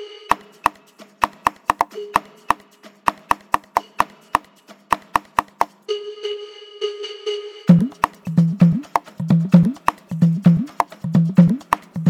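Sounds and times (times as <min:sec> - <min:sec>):
hard dholki bass mix: 0:00.3 - 0:01.9, 0:03.1 - 0:05.7, 0:07.7 - 0:12.0.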